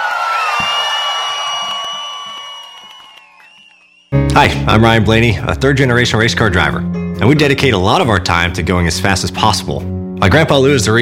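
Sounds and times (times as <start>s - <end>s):
crowd cheering and whooping: 0.0s - 4.2s
high whistles: 0.3s - 4.2s
speech: 4.4s - 11.0s.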